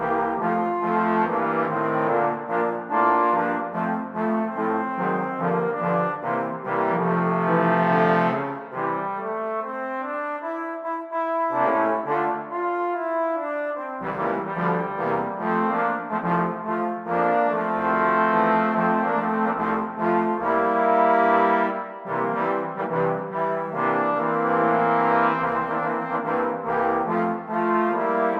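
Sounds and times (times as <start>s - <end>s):
trombone quartet playing a Christmas song: 0.0s - 28.3s.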